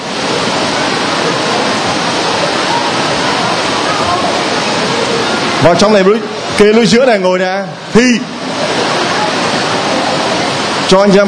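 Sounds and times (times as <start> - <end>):
heavy rain pouring: 0.0 - 11.2
speech: 5.6 - 8.6, 10.9 - 11.2.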